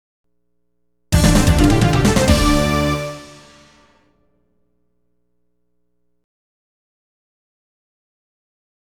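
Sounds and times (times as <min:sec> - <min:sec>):
level up jingle: 0:01.2 - 0:03.8.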